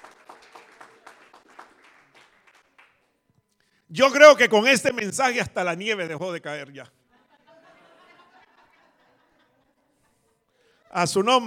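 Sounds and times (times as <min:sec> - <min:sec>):
applause: 0:00.0 - 0:03.2
speech: 0:03.9 - 0:07.0, 0:11.0 - 0:11.4
laughter: 0:07.1 - 0:11.1.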